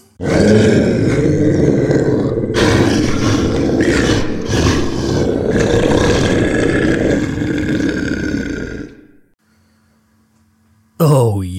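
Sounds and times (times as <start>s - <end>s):
monster growl sound effect for a Dungeons & Dragons mimic: 0.2s - 9.3s.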